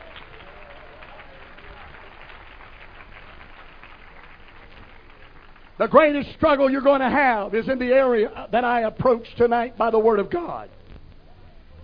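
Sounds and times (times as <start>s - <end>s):
audience clapping hands: 0.0s - 6.6s
speech: 5.8s - 10.8s.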